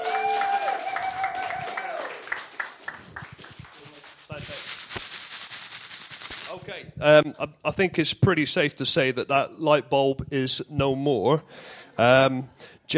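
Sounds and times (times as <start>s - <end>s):
audience applause: 0.0s - 4.3s
speech: 6.6s - 12.9s.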